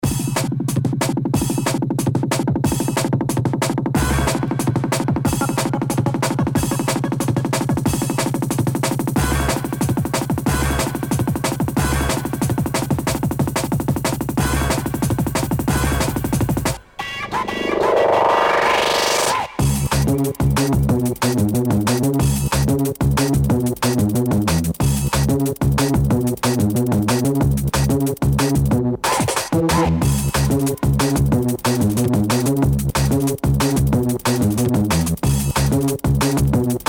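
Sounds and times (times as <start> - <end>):
drum and bass music: 0.0 - 36.8.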